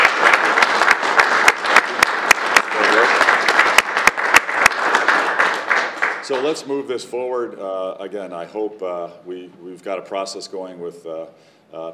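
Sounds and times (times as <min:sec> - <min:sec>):
audience applause: 0:00.0 - 0:06.6
speech: 0:06.3 - 0:11.9.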